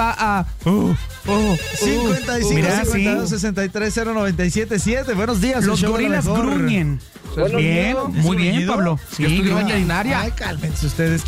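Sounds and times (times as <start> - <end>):
speech: 0.0 - 11.2
melodic telephone ringtone for an incoming call: 1.3 - 3.3.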